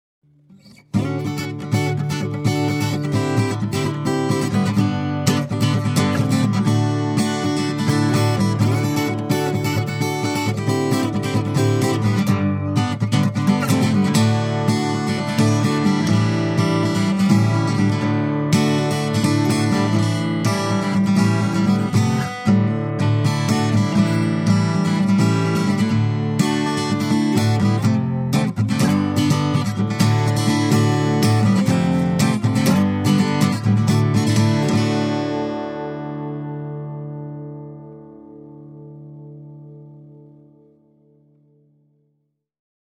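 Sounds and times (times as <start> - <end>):
guitar: 0.2 - 42.2.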